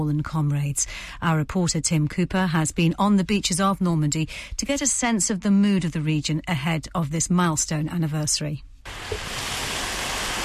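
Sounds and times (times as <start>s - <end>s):
speech: 0.0s - 9.4s
gentle waves breaking on a beach shore: 8.9s - 10.4s.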